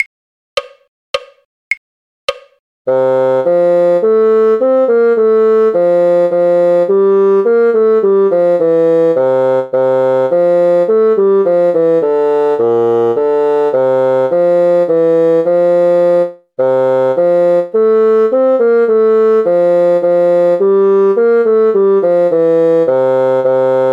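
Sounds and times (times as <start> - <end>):
bassoon: 2.9 - 23.9.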